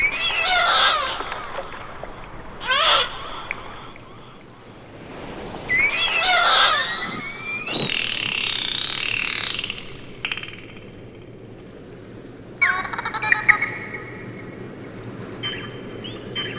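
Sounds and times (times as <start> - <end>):
dolphins vocalizing: 0.0 - 11.2, 12.6 - 14.3.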